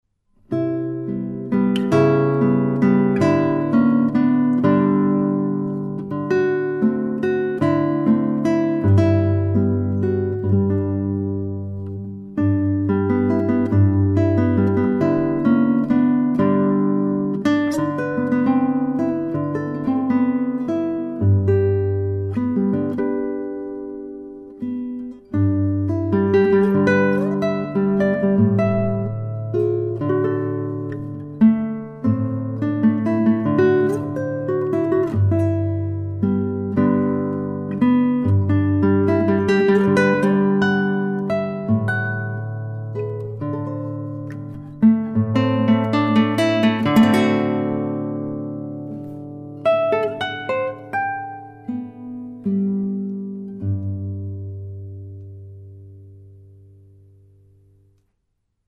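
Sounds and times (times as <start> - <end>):
classical guitar waltz in G major: 0.3 - 58.1.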